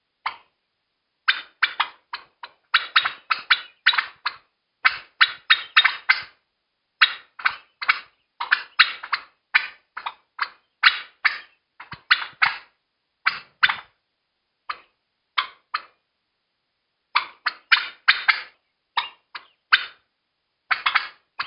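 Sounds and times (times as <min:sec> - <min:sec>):
turkey panic calling: 0:01.3 - 0:06.4, 0:07.0 - 0:13.9, 0:14.7 - 0:16.0, 0:17.1 - 0:20.0, 0:20.7 - 0:21.4.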